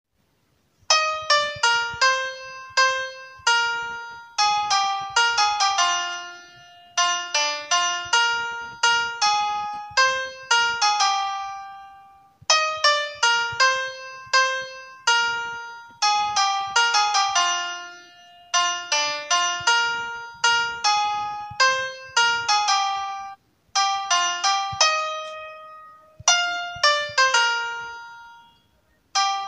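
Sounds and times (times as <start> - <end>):
instrumental music ringtone: 0.9 - 29.4.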